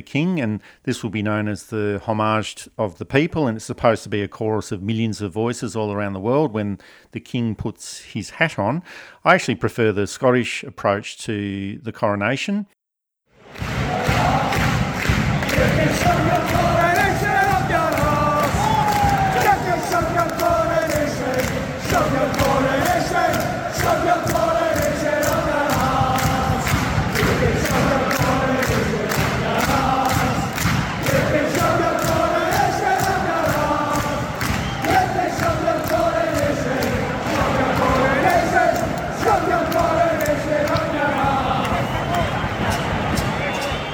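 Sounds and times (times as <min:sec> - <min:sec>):
speech: 0:00.0 - 0:12.8, 0:15.6 - 0:16.9
football stadium crowd shouting at Celtic versus Glasgow Rangers game in Scotland: 0:13.4 - 0:43.9.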